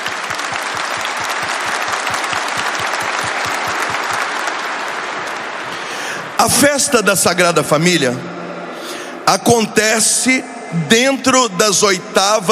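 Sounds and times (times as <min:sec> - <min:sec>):
audience applauding loudly: 0:00.0 - 0:06.9
speech: 0:06.4 - 0:08.4, 0:09.3 - 0:12.4.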